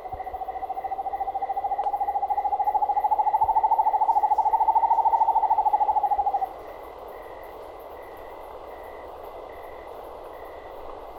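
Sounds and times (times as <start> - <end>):
corujinha frog calling: 0.0 - 6.5.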